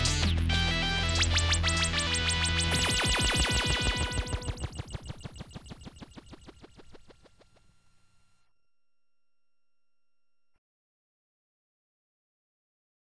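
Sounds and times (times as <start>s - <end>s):
instrumental rap beat: 0.0s - 4.7s.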